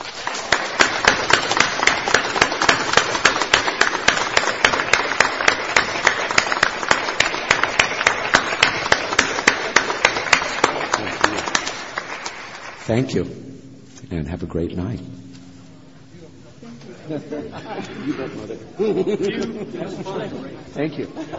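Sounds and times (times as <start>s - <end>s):
crowd applauding: 0.0s - 13.2s
speech: 12.9s - 13.4s, 14.1s - 15.2s, 17.1s - 21.3s
laughter: 16.6s - 21.3s.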